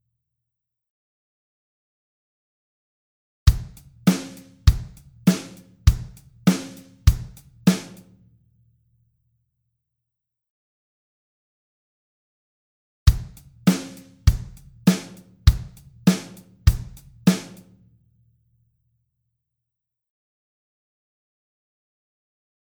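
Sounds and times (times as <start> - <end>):
drum machine straight four-four beat: 3.5 - 8.0, 13.1 - 17.6.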